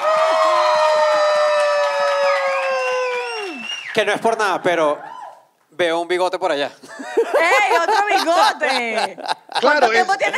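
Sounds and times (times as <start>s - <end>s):
audience applause and cheering: 0.0s - 5.5s
speech: 4.0s - 5.1s, 5.7s - 10.3s
laughter: 6.9s - 10.3s.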